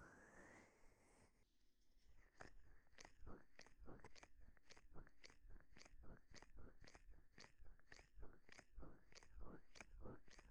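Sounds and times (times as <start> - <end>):
ear cleaning on right ear: 2.3 - 10.4.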